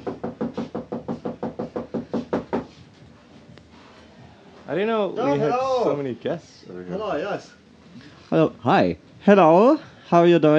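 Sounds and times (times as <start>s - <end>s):
knocking on a door: 0.0s - 2.8s
speech: 4.7s - 10.5s.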